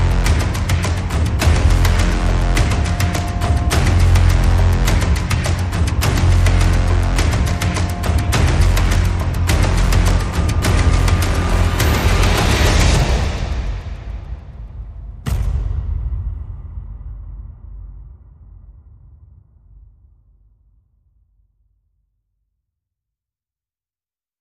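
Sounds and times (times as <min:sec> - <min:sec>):
pulsing synth: 0:00.0 - 0:14.1
percussion: 0:00.0 - 0:19.6.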